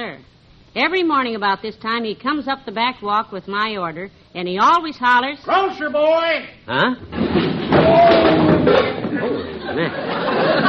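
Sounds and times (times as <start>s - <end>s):
speech: 0.1s - 10.6s
person tripping and falling over: 7.0s - 9.9s
laughter: 8.1s - 10.6s.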